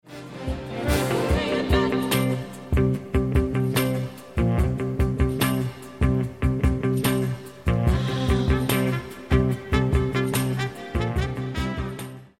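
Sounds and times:
guitar: 0:00.1 - 0:12.3.

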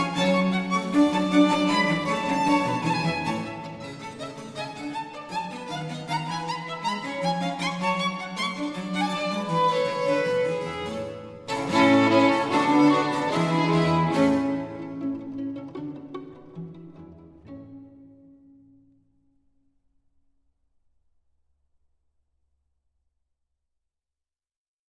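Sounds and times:
trio sonata gavotte presto in B-flat major: 0:00.0 - 0:18.2.

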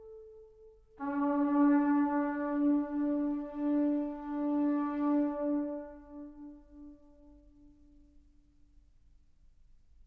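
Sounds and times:
shofar blowing: 0:00.0 - 0:07.9.

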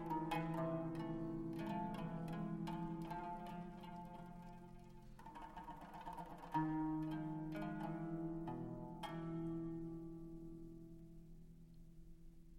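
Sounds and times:
kanun taksim improvisation: 0:00.0 - 0:10.1.

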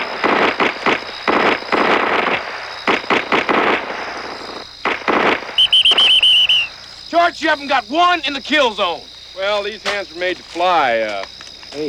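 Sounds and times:
rapid gunfire: 0:00.0 - 0:05.7
high electronic beeps: 0:05.6 - 0:06.7
speech: 0:07.4 - 0:11.8.

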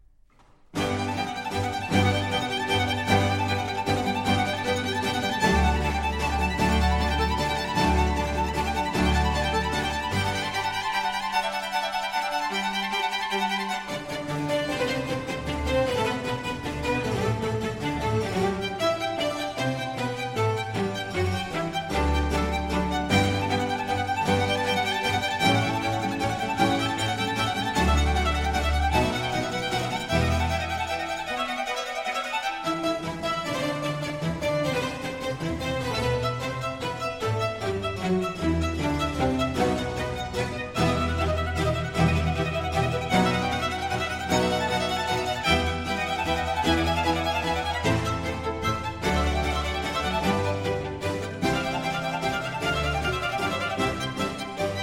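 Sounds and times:
string orchestra playing an allegro in G major: 0:00.2 - 0:54.8.

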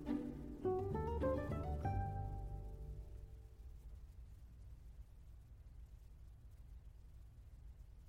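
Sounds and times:
classical piece arranged for guitar: 0:00.0 - 0:03.5.

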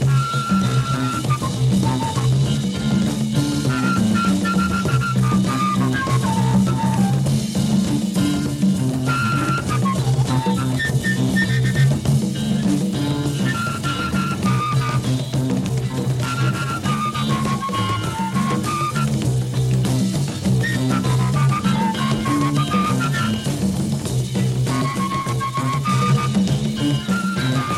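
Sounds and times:
flute instrumental music: 0:00.0 - 0:27.7.

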